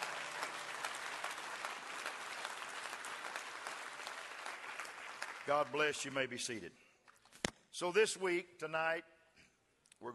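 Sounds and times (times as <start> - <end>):
audience clapping hands: 0.0 - 7.4
speech: 5.5 - 6.8, 7.8 - 9.1, 10.0 - 10.1.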